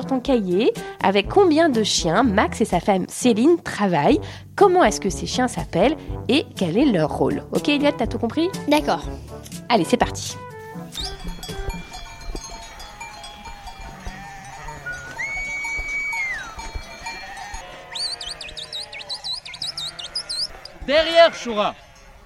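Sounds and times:
speech: 0.1 - 11.1, 20.9 - 21.8
faint bell clinks: 11.0 - 17.7
large flock of sheep bleating: 12.5 - 22.2.

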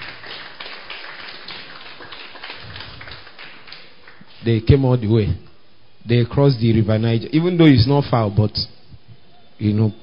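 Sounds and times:
crowd clapping: 0.0 - 4.4
speech: 4.4 - 8.8, 9.6 - 10.0.

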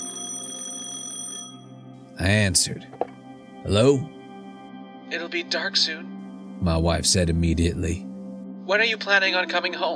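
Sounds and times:
office telephone ringing: 0.0 - 1.9
speech: 2.2 - 4.2, 5.1 - 8.1, 8.7 - 9.9.

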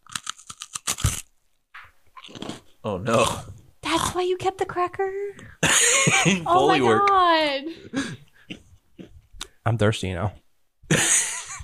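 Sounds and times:
bones crunching: 0.0 - 1.3
speech: 2.8 - 8.2, 9.6 - 11.1.

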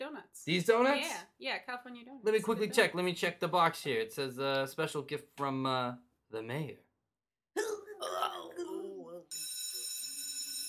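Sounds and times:
speech: 0.2 - 6.8
bell ringing: 9.3 - 10.6.

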